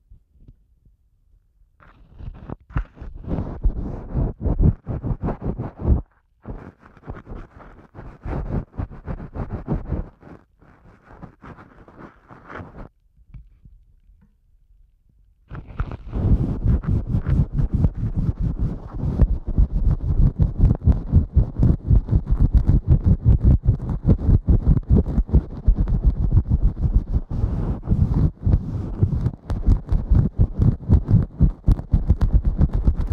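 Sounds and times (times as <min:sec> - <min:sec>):
ear cleaning with an ear pick: 0:01.8 - 0:12.9, 0:15.5 - 0:33.0.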